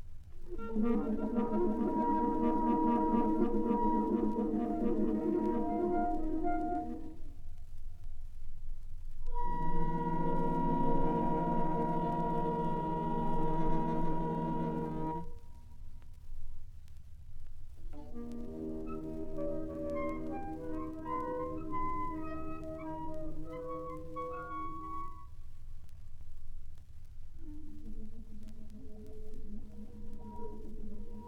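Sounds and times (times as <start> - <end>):
saxophone orchestra: 0.5 - 7.2, 9.3 - 15.4, 18.0 - 25.0.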